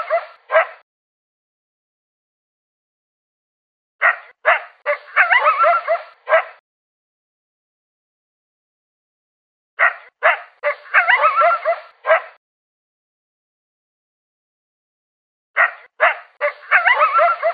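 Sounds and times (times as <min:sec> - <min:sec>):
coyote barking and yelping: 0:00.0 - 0:00.8, 0:04.0 - 0:06.6, 0:09.8 - 0:12.4, 0:15.6 - 0:17.5.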